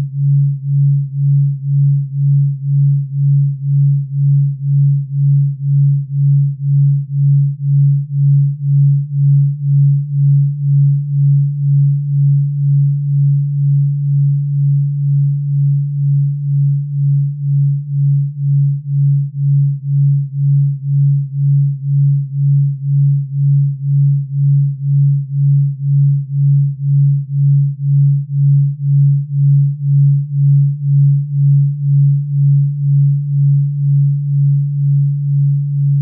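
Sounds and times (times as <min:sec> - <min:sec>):
2Hz delta wave tone: 0:00.0 - 0:36.0.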